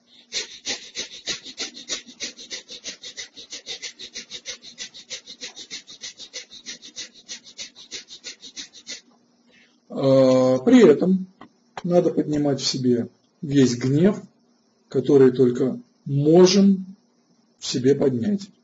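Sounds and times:
rapid forceful breath of fire breathing: 0:00.0 - 0:09.9
speech: 0:10.0 - 0:14.3, 0:14.9 - 0:17.0, 0:17.7 - 0:18.6.

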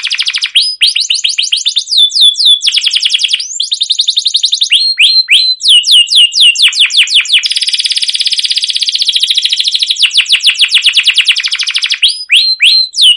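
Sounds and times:
canary singing: 0:00.0 - 0:13.1.

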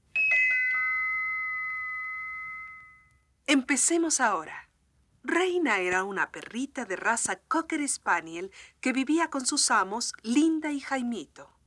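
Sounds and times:
tinkling little bells: 0:00.1 - 0:03.2
speech: 0:03.5 - 0:04.7, 0:05.3 - 0:11.5.

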